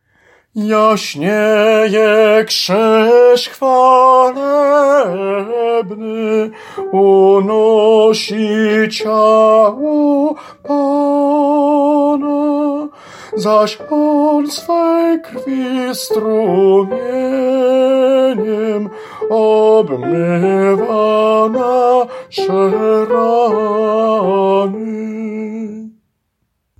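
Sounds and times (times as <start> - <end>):
tenor singing: 0.5 - 26.0.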